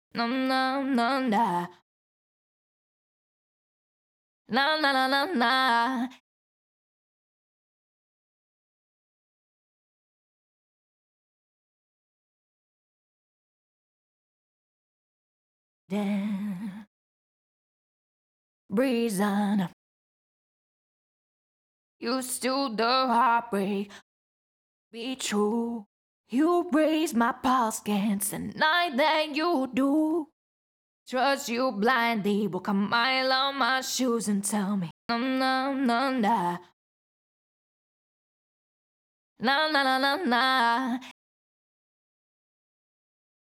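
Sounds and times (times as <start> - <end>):
pop vocals a cappella in A-flat major: 0.1 - 1.8, 4.5 - 6.2, 15.9 - 16.9, 18.7 - 19.8, 22.0 - 24.0, 25.0 - 30.3, 31.1 - 36.8, 39.4 - 41.2.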